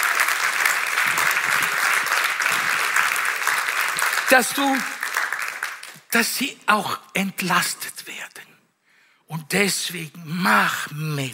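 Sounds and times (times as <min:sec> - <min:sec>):
audience applause: 0:00.0 - 0:06.1
speech: 0:04.3 - 0:04.9, 0:06.1 - 0:08.4, 0:09.3 - 0:11.3.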